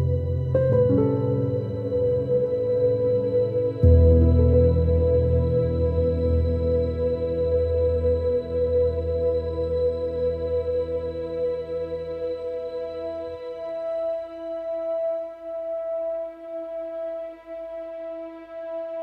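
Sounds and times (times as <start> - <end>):
small piano theme: 0.0 - 15.1.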